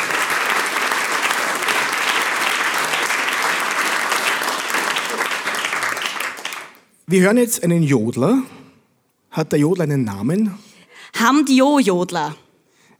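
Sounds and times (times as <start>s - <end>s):
audience applause: 0.0s - 7.0s
speech: 7.1s - 8.6s, 9.4s - 10.6s, 11.2s - 12.4s.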